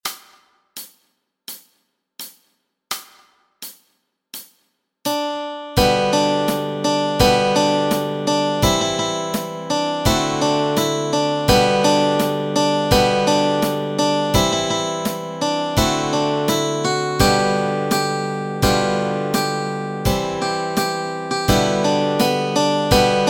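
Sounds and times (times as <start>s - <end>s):
melody and chords: 5.1s - 23.2s.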